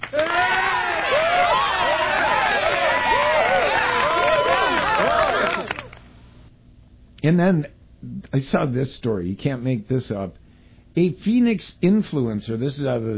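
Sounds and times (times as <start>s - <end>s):
applause sound effect: 0.0s - 6.1s
speech: 7.2s - 10.4s, 11.0s - 13.1s.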